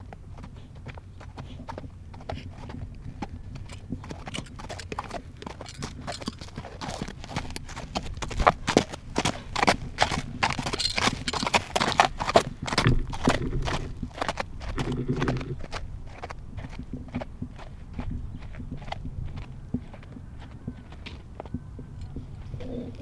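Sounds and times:
horse passing by and stopping: 0.0 - 22.9.

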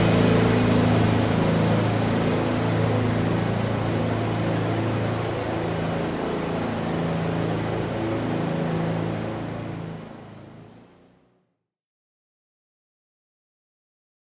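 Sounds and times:
Zamboni ice resurfacing machine at ice skating rink: 0.0 - 11.3.

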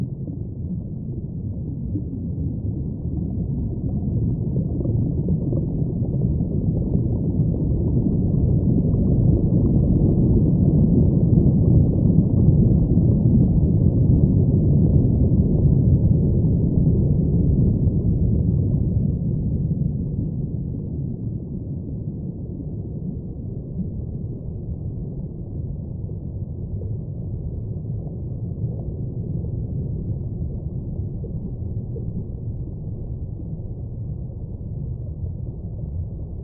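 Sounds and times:
underwater rumble ambience: 0.0 - 36.4.

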